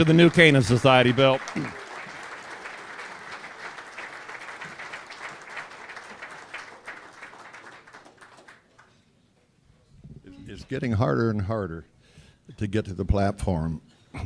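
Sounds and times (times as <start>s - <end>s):
speech: 0.0s - 1.8s, 10.7s - 11.9s, 12.5s - 14.2s
audience applause: 0.0s - 8.9s.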